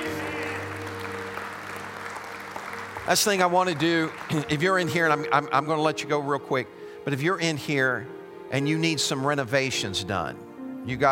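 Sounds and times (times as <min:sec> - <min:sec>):
audience clapping in praise: 0:00.0 - 0:05.9
speech: 0:03.1 - 0:11.1.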